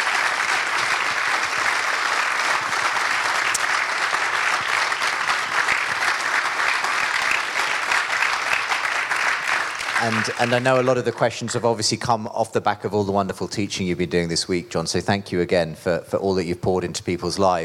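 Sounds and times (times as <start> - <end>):
audience applause: 0.0 - 11.7
speech: 10.0 - 17.6.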